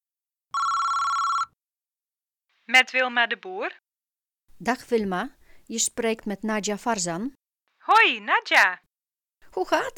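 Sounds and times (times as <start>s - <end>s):
telephone ringing with electronic trill: 0.5s - 1.6s
speech: 2.7s - 3.8s, 4.6s - 8.8s, 9.5s - 9.9s.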